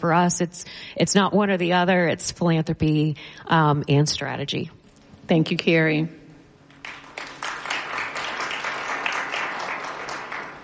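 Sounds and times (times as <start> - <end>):
speech: 0.0 - 6.2
audience clapping: 6.7 - 10.6.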